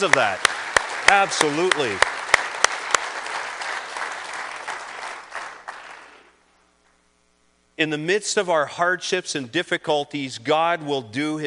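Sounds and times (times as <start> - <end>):
speech: 0.0 - 0.5, 1.1 - 2.2, 7.8 - 11.4
audience clapping hands: 0.0 - 6.4.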